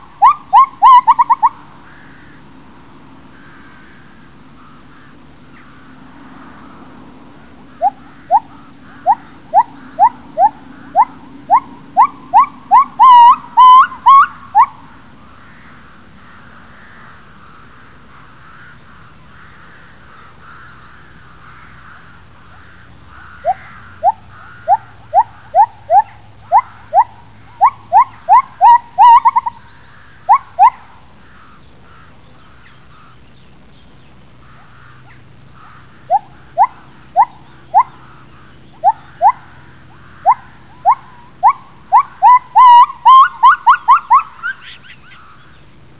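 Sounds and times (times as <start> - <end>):
male gibbons calling: 0.0 - 2.4, 7.7 - 14.9, 21.2 - 33.2, 34.4 - 45.6.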